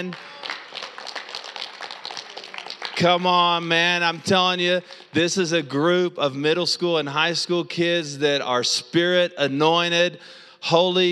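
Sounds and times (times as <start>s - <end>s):
speech: 0.0s - 0.4s, 3.0s - 11.1s
group of students clapping: 0.0s - 5.1s.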